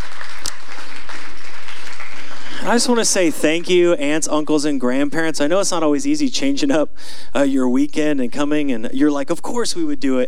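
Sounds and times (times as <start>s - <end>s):
audience applause: 0.0s - 4.0s
speech: 2.7s - 10.2s.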